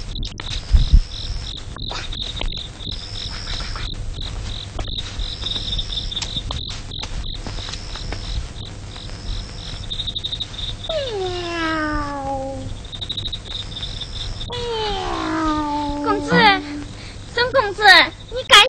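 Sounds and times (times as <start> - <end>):
crickets chirping: 0.0 - 18.6
cat meowing: 10.9 - 12.7, 14.5 - 17.0.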